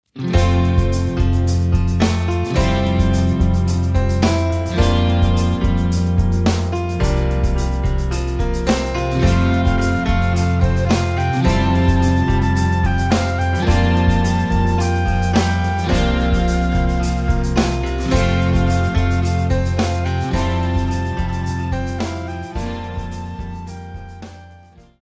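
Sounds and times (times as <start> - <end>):
instrumental music: 0.1 - 25.0.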